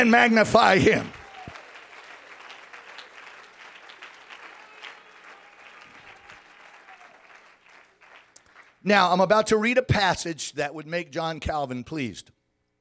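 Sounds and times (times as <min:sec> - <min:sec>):
speech: 0:00.0 - 0:01.2, 0:08.8 - 0:12.4
audience clapping hands: 0:00.0 - 0:08.8.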